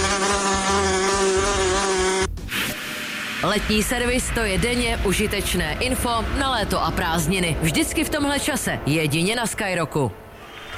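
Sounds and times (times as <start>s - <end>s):
wasp buzzing: 0.0s - 2.3s
speech: 3.4s - 10.2s.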